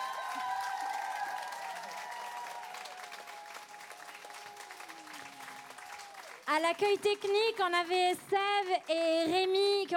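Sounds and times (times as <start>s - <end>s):
faint crowd applause and cheering: 0.0s - 7.3s
speech: 6.5s - 9.9s.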